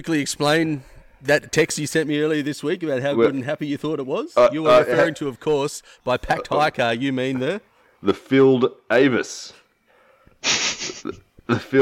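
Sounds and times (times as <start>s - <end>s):
speech: 0.0s - 9.6s, 10.4s - 11.8s
small sniffle: 10.4s - 11.0s.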